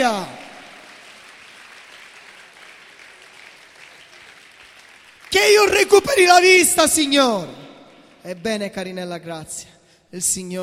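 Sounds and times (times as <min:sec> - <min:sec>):
speech: 0:00.0 - 0:00.4, 0:05.4 - 0:07.6, 0:08.2 - 0:10.6
audience applause: 0:00.0 - 0:06.0.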